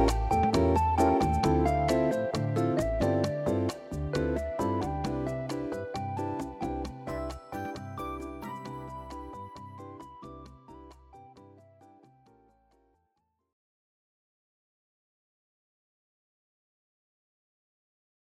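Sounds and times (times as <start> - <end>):
relaxing shop music: 0.0 - 12.1.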